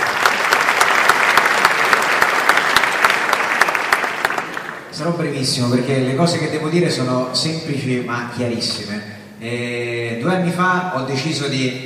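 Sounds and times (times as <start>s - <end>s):
audience applause: 0.0s - 4.9s
speech: 5.0s - 11.8s.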